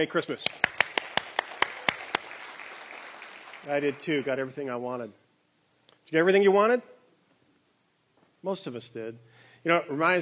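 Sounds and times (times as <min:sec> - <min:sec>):
speech: 0:00.0 - 0:00.8, 0:03.6 - 0:05.2, 0:06.1 - 0:06.9, 0:08.4 - 0:10.2
audience applause: 0:00.4 - 0:04.4.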